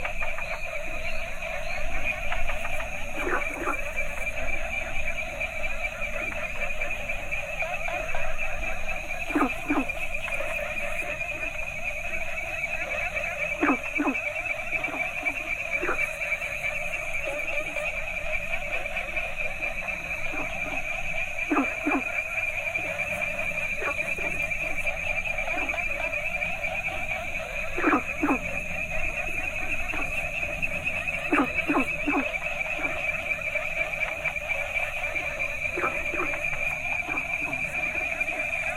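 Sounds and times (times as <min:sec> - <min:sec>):
variety of Asian frogs calling: 0:00.0 - 0:38.7.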